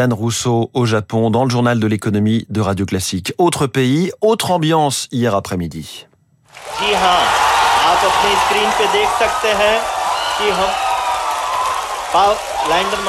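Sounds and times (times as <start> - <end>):
speech: 0.0 - 10.9, 12.1 - 13.0
cheering and applause in Chandrayaan 3 mission control room in India: 6.5 - 13.0.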